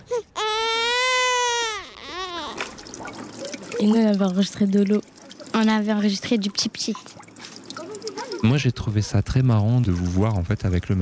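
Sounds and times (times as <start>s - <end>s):
baby crying: 0.0s - 2.8s
speech: 3.8s - 7.2s, 8.4s - 11.0s.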